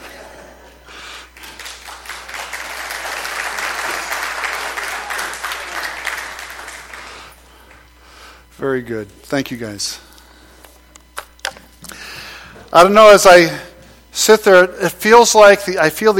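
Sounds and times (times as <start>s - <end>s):
audience clapping: 1.1s - 7.4s
speech: 8.6s - 10.1s, 12.7s - 16.1s.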